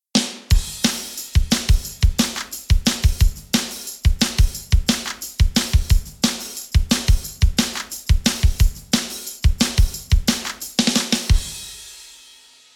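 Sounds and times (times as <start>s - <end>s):
drum: 0.1s - 12.3s.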